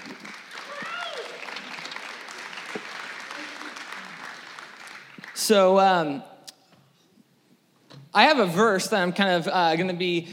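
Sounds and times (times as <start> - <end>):
audience applause: 0.0 - 5.5
speech: 5.4 - 6.3, 8.2 - 10.3.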